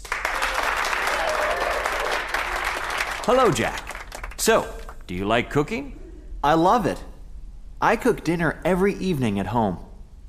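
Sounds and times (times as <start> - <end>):
audience applause for cooking game show contestants: 0.0 - 5.1
speech: 3.2 - 3.8, 4.4 - 7.1, 7.8 - 9.9.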